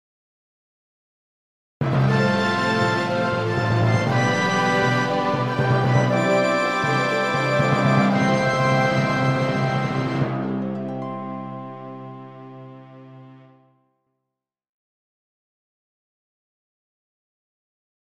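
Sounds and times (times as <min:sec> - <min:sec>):
fanfare: 0:01.8 - 0:12.8.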